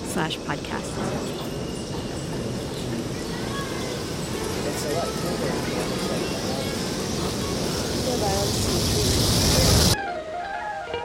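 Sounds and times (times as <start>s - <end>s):
train passing by: 0.0s - 11.0s
speech: 0.2s - 1.5s, 8.1s - 9.7s.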